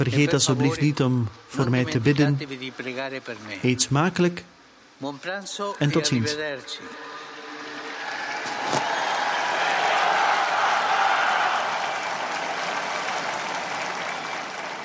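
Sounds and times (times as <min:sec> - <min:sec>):
speech: 0:00.0 - 0:07.1
large crowd clapping and cheering in a square: 0:07.6 - 0:14.8.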